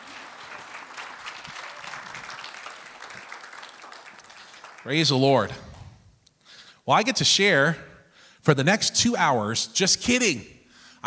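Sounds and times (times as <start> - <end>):
audience applause at a church service: 0.0 - 5.8
speech: 4.8 - 5.7, 6.9 - 11.0.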